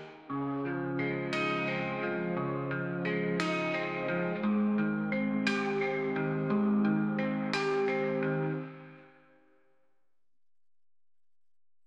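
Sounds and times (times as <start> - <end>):
sad slow Spanish indie music: 0.0 - 9.0.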